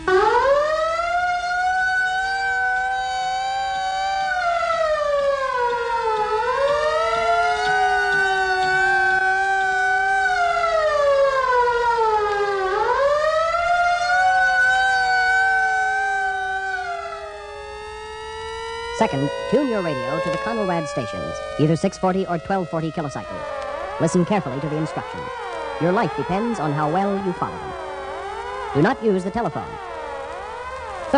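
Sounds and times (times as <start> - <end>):
civil defense take-cover wailing siren: 0.0 - 31.1
speech: 19.0 - 27.8, 28.7 - 29.9.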